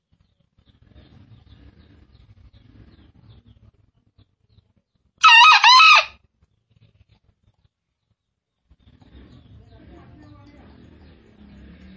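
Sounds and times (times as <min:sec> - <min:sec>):
green junglefowl crowing: 0:05.2 - 0:06.2.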